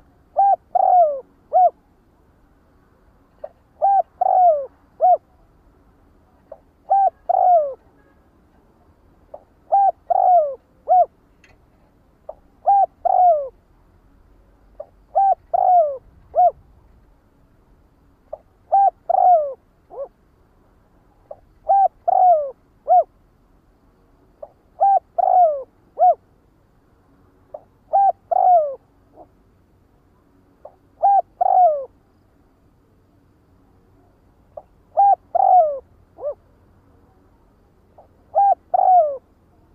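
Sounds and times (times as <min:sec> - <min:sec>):
spotted dove cooing: 0:00.0 - 0:01.8, 0:03.4 - 0:05.4, 0:06.5 - 0:07.8, 0:09.3 - 0:11.2, 0:12.3 - 0:13.6, 0:14.8 - 0:16.7, 0:18.3 - 0:20.1, 0:21.3 - 0:23.1, 0:24.4 - 0:26.2, 0:27.5 - 0:29.3, 0:30.6 - 0:32.0, 0:34.6 - 0:36.4, 0:38.0 - 0:39.3.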